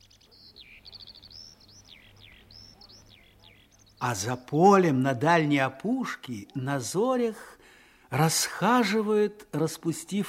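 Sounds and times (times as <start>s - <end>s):
skylarks singing: 0.0s - 7.3s
speech: 4.0s - 10.2s.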